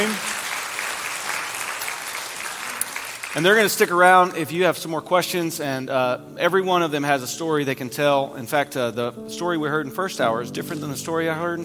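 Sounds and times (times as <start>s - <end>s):
audience applause: 0.0s - 3.9s
speech: 3.4s - 11.6s.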